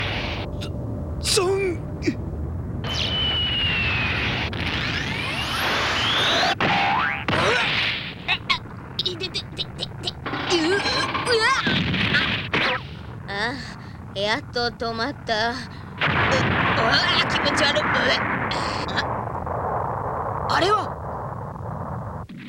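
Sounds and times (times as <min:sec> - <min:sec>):
explosion: 0:00.0 - 0:22.4
speech: 0:00.6 - 0:02.2, 0:14.3 - 0:15.7, 0:16.3 - 0:18.4, 0:20.6 - 0:20.9.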